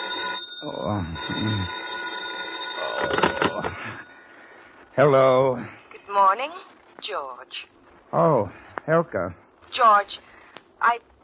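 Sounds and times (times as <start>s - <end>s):
telephone ringing: 0.0s - 4.4s
speech: 0.8s - 1.8s, 3.0s - 4.1s, 5.0s - 11.1s.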